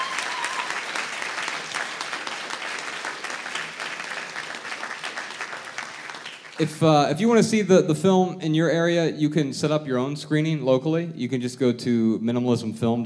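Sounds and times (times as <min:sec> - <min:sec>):
audience applause: 0:00.0 - 0:06.8
speech: 0:06.6 - 0:13.0.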